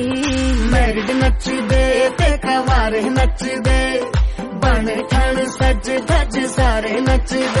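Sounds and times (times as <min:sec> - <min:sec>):
Hindi song: 0:00.2 - 0:07.5.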